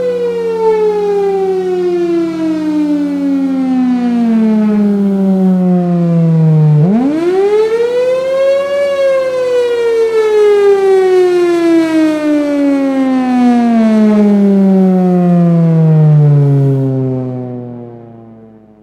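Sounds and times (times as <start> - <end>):
siren attack tone: 0.0 - 18.8.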